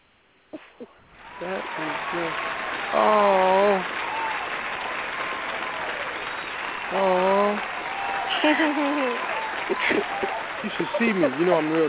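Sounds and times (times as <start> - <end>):
person's voice: 0.6 - 2.3, 3.0 - 3.9, 6.9 - 7.6, 10.6 - 11.8
speech: 0.8 - 4.0, 6.9 - 7.6, 8.4 - 11.8
audience applause for a special guest at an evening event: 1.1 - 11.8
laughter: 1.4 - 4.3, 6.8 - 11.8.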